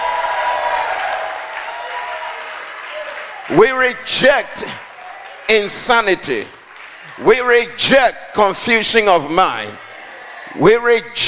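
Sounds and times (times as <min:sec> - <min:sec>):
audience shouting: 0:00.0 - 0:03.6
audience clapping: 0:00.0 - 0:07.6
speech: 0:03.5 - 0:04.9, 0:05.5 - 0:06.6, 0:07.2 - 0:09.8, 0:10.5 - 0:11.2.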